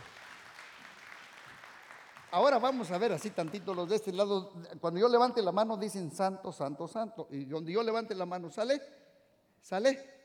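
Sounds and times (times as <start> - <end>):
audience applause: 0.0 - 3.9
speech: 2.3 - 9.0, 9.6 - 10.2.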